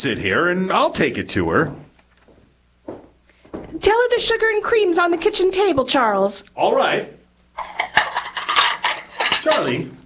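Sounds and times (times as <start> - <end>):
speech: 0.0 - 1.9, 3.8 - 8.0, 9.4 - 10.0
dishes and cutlery being handled: 7.6 - 9.8.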